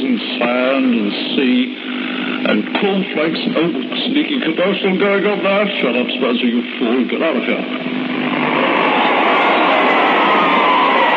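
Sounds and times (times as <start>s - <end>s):
speech: 0.4s - 8.1s
crowd at the Carntyne Stadium enjoying an evening: 8.2s - 11.1s.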